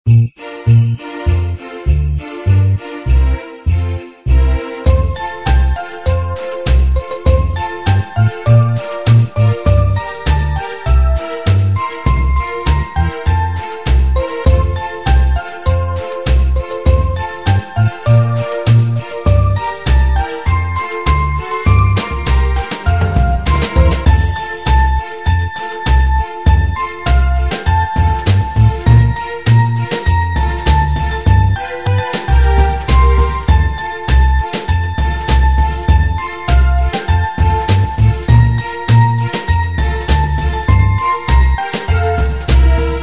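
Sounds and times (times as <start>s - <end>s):
background music: 0.2s - 43.0s.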